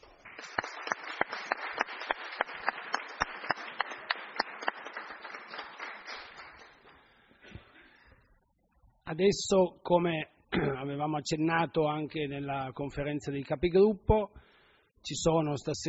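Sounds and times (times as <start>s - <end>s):
applause in council meeting room: 0.0s - 7.2s
speech: 9.1s - 14.4s, 15.0s - 15.8s.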